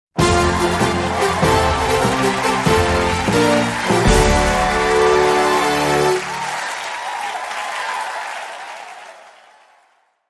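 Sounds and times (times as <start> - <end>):
big fanfare: 0.2 - 7.6
crowd: 0.2 - 10.2.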